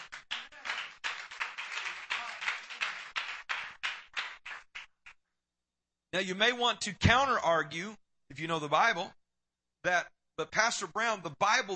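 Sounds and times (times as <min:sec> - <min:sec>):
audience clapping hands: 0:00.0 - 0:05.2
speech: 0:06.1 - 0:09.2, 0:09.8 - 0:11.7.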